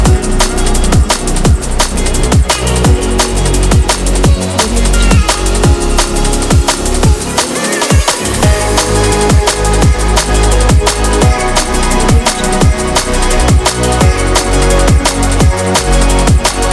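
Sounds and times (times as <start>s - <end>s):
drum and bass music: 0.0s - 16.7s.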